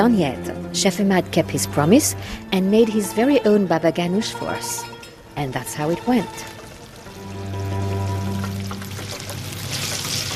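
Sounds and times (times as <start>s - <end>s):
speech: 0.0s - 6.6s
eggplant frying in a pan: 5.5s - 10.3s.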